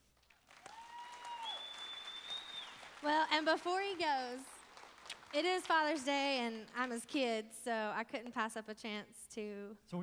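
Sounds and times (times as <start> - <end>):
church audience applause welcoming a speaker: 0.2 - 6.3
speech: 3.0 - 4.6, 5.3 - 10.0.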